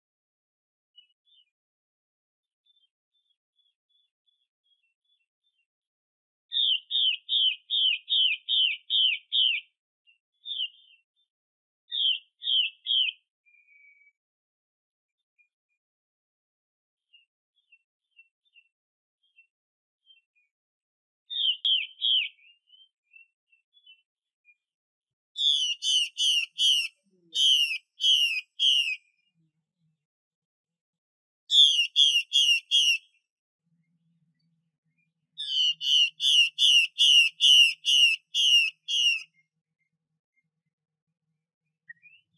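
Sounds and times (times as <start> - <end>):
Chinese hwamei song: 6.5 - 9.7, 10.4 - 11.0, 11.9 - 14.2, 21.3 - 24.0, 25.4 - 29.1, 31.5 - 33.2, 35.4 - 39.4, 41.8 - 42.3.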